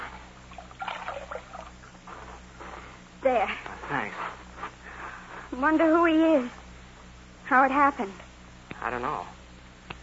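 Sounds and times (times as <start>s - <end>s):
water poured over a bullet wound in a man's chest: 0.0s - 1.8s
low steady hum: 0.0s - 10.0s
speech: 3.2s - 4.3s, 5.5s - 6.6s, 7.5s - 8.2s, 8.8s - 9.4s.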